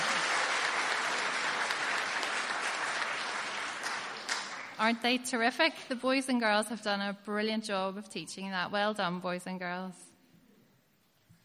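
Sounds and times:
audience applause: 0.0s - 4.8s
speech: 4.8s - 10.0s.

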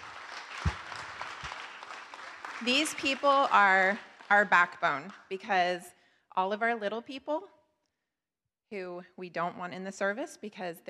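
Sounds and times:
crowd clapping: 0.0s - 5.4s
speech: 2.6s - 7.6s, 8.7s - 10.8s.

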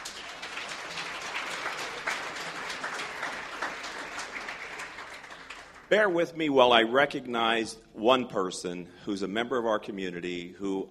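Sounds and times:
audience applause: 0.0s - 6.0s
speech: 5.9s - 10.8s.

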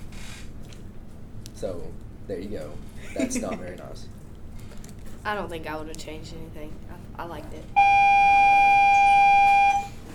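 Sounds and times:
speech: 1.6s - 4.2s, 5.2s - 7.9s
alarm ringing with a steady high-pitched electronic tone: 7.8s - 10.0s.

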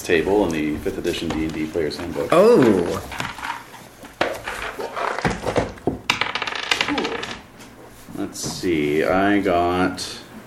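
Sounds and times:
speech: 0.1s - 3.3s, 8.7s - 10.2s
d20 die rolling on a table: 1.1s - 7.5s.

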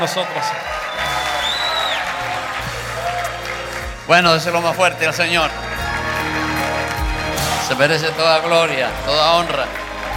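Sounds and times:
speech: 0.0s - 1.1s, 4.1s - 5.7s, 7.7s - 9.8s
audience applause: 0.0s - 10.1s.

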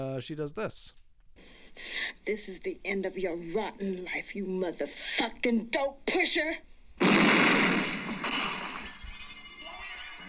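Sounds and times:
speech: 0.2s - 8.6s
sawed-off shotgun blast from the 1973 film Coffy: 7.0s - 8.8s.

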